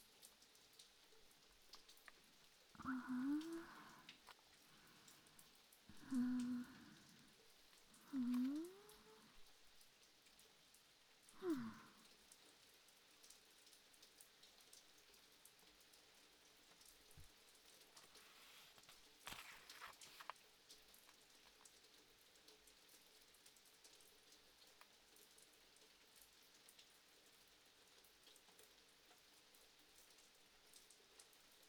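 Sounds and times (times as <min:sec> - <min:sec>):
rain: 0:00.0 - 0:31.6
person reading a book: 0:02.8 - 0:05.0, 0:05.9 - 0:07.3, 0:07.9 - 0:09.4, 0:18.0 - 0:20.4.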